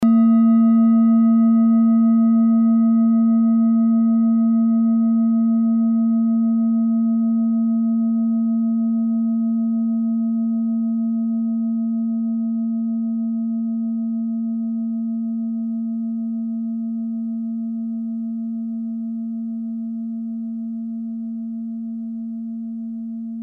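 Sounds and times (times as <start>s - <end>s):
set of singing bowls: 0.0s - 23.4s.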